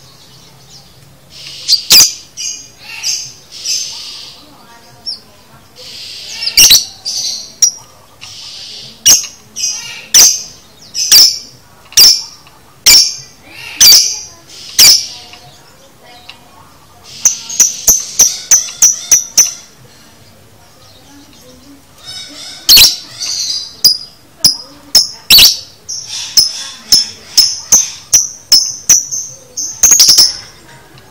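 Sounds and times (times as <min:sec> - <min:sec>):
lovebird chirping: 0:00.2 - 0:04.4, 0:05.8 - 0:15.6, 0:17.0 - 0:19.8, 0:21.3 - 0:30.6.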